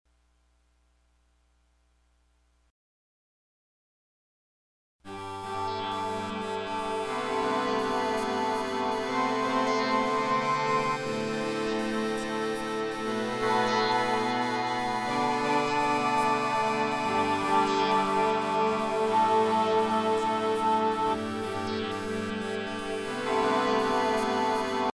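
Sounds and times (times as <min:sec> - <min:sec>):
synth: 0:05.1 - 0:24.9.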